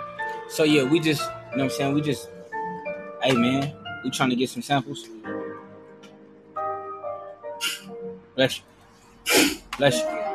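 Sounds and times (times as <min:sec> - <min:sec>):
steady tonal sounds: 0:00.0 - 0:09.3
speech: 0:00.5 - 0:02.4, 0:03.2 - 0:05.4, 0:08.4 - 0:08.7, 0:09.3 - 0:10.2
person sneezing: 0:09.3 - 0:09.7.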